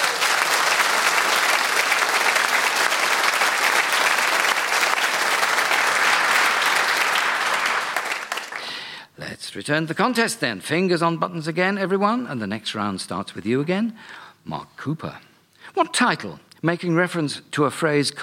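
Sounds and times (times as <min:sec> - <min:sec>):
studio audience applause: 0:00.0 - 0:08.9
speech: 0:09.5 - 0:18.2.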